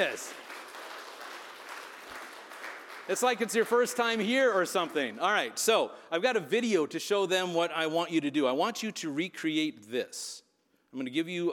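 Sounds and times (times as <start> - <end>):
speech: 0.0 - 0.4, 3.1 - 11.5
audience applause: 0.0 - 4.2.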